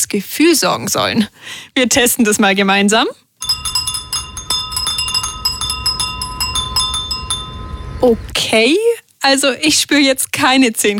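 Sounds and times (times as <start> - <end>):
speech: 0.1 - 3.7, 8.0 - 10.9
Japanese furin glass wind chimes tinkling: 3.4 - 8.4.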